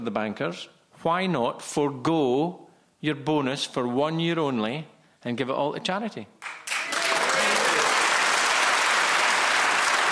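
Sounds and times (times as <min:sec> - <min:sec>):
speech: 0:00.0 - 0:06.6
audience applause: 0:06.4 - 0:10.1.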